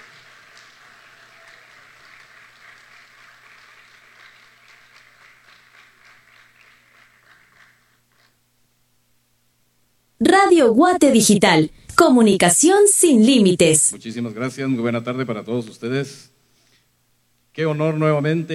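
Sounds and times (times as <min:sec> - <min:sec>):
audience applause: 0:00.0 - 0:08.4
speech: 0:10.3 - 0:16.3, 0:17.6 - 0:18.5.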